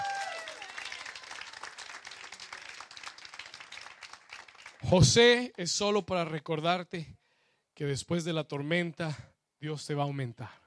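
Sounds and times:
audience applauding: 0.0 - 5.1
speech: 4.9 - 7.2, 7.8 - 10.6.

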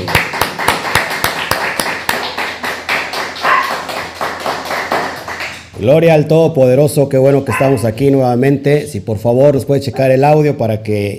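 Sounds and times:
crowd applauding: 0.0 - 5.7
speech: 5.8 - 11.1.

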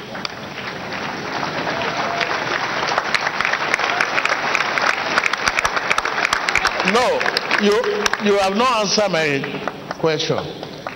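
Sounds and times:
crowd clapping: 0.0 - 10.9
speech: 6.9 - 10.6.

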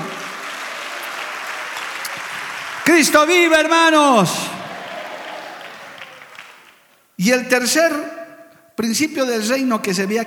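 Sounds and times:
crowd clapping: 0.0 - 7.0
speech: 2.9 - 4.6, 7.2 - 8.1, 8.8 - 10.2.

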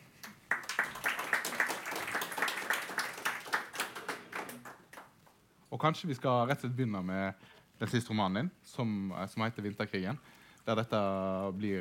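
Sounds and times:
audience applause: 0.4 - 5.1
speech: 5.7 - 11.7.

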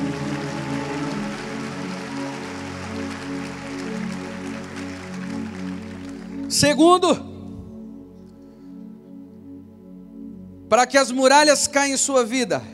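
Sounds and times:
audience applauding: 0.0 - 7.1
speech: 6.5 - 7.3, 10.7 - 12.7.

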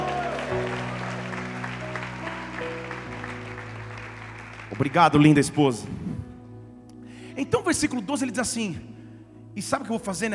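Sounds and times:
audience applauding: 0.0 - 5.9
sustained organ or keyboard chords: 0.0 - 10.3
speech: 4.7 - 6.0, 7.4 - 8.9, 9.6 - 10.3.

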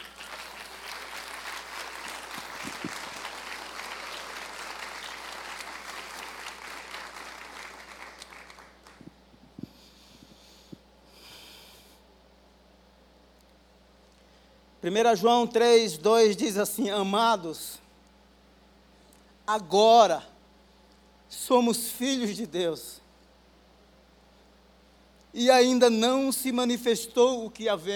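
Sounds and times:
audience applause: 0.0 - 9.1
speech: 14.8 - 17.8, 19.5 - 20.3, 21.4 - 23.0, 25.4 - 27.9.

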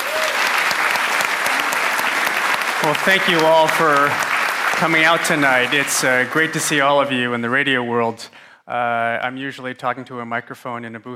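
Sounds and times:
live audience applause welcoming speaker Scott Tong at an evening talk: 0.0 - 7.2
speech: 2.8 - 11.1.

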